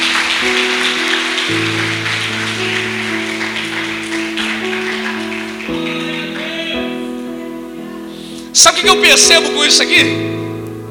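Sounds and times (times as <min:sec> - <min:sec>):
audience applause: 0:00.0 - 0:07.2
speech: 0:08.6 - 0:10.4.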